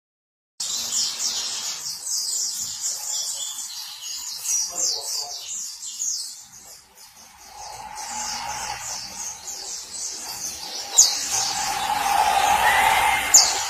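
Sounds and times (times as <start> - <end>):
white-eye song: 7.0 - 13.6.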